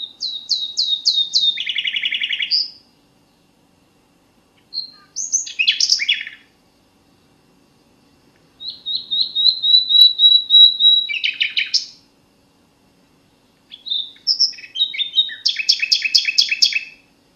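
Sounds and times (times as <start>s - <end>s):
common nightingale singing: 0.0s - 3.6s, 4.5s - 6.8s, 8.6s - 12.1s, 13.5s - 17.1s.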